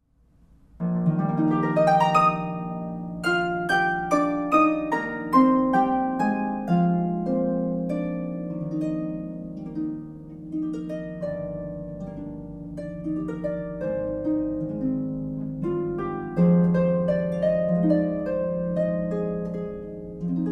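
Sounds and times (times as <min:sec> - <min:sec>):
harp: 0:00.8 - 0:20.4.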